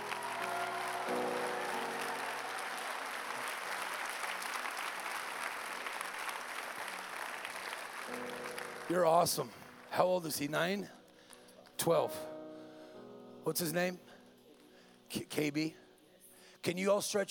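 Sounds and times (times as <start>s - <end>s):
audience clapping: 0.0s - 9.8s
speech: 8.9s - 11.0s, 11.8s - 12.3s, 13.5s - 14.1s, 15.1s - 15.8s, 16.6s - 17.2s.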